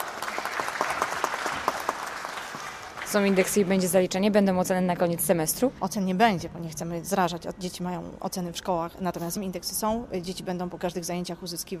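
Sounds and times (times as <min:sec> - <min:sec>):
applause for a student in a music class: 0:00.0 - 0:03.8
speech: 0:03.1 - 0:11.7.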